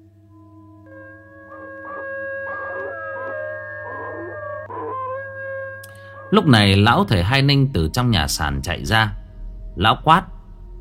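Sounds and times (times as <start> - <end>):
howl: 0.9 - 6.4
speech: 6.3 - 9.2, 9.8 - 10.3.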